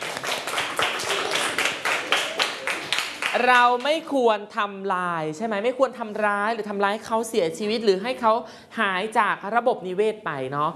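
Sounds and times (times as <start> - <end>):
children clapping: 0.0 - 3.9
speech: 3.4 - 10.7.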